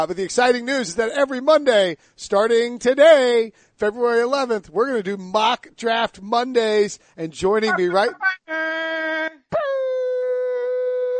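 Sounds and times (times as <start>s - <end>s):
speech: 0.0s - 9.9s
voice imitating air horns: 7.7s - 11.1s.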